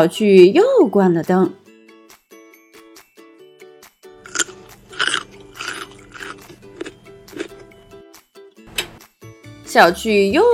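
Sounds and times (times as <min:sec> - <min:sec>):
speech: 0:00.0 - 0:01.6, 0:09.8 - 0:10.5
carrots being bitten and chewed: 0:04.2 - 0:07.8.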